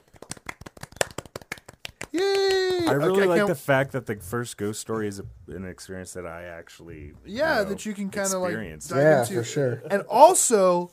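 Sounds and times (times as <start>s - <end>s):
hand claps: 0.0s - 3.3s
speech: 2.1s - 10.9s.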